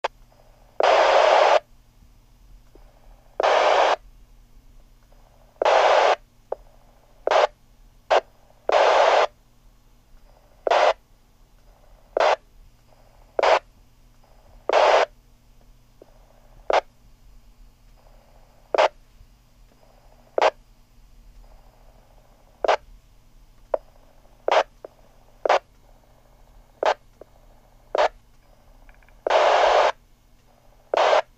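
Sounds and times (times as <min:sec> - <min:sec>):
static mobile VHF radio static: 0:00.7 - 0:01.7, 0:02.8 - 0:04.0, 0:05.2 - 0:09.4, 0:10.3 - 0:11.0, 0:11.7 - 0:13.7, 0:14.3 - 0:15.2, 0:16.0 - 0:17.0, 0:18.0 - 0:19.0, 0:19.9 - 0:20.6, 0:21.5 - 0:22.9, 0:23.7 - 0:30.0, 0:30.6 - 0:31.3.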